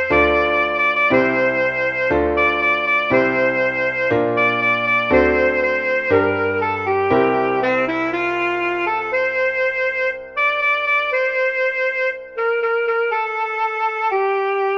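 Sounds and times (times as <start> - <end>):
alto saxophone playing a jazz standard: 0.0 - 14.7.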